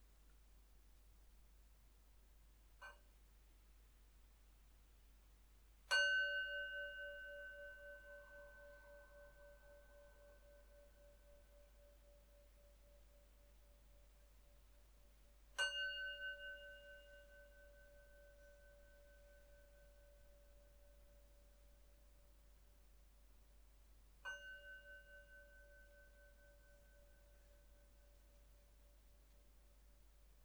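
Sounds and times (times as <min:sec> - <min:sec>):
meditation bell ringing: 0:05.9 - 0:13.7, 0:15.6 - 0:21.7, 0:24.2 - 0:28.6.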